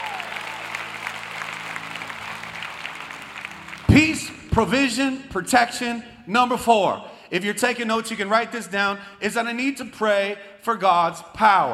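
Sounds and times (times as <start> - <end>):
audience applause: 0.0 - 4.4
speech: 4.2 - 11.7.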